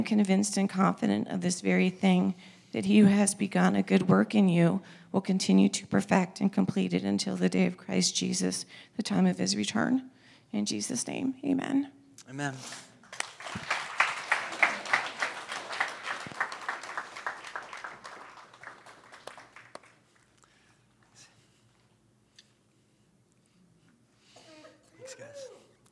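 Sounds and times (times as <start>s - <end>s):
speech: 0.0s - 12.9s
crowd applause and cheering: 13.0s - 20.0s.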